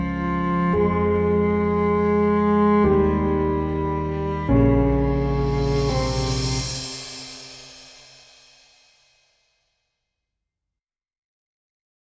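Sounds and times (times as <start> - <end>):
instrumental music: 0.0 - 8.7.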